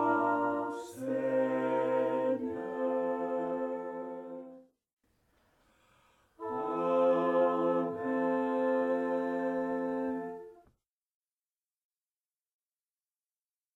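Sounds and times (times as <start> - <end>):
four-voice choir singing a Kyrie: 0.0 - 4.7, 6.4 - 10.6.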